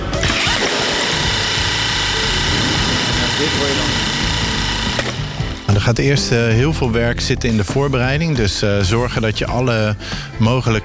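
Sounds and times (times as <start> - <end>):
air-powered hammer driven by a small pump hissing and whirring: 0.2 - 5.7
speech: 3.4 - 4.1, 5.8 - 10.8.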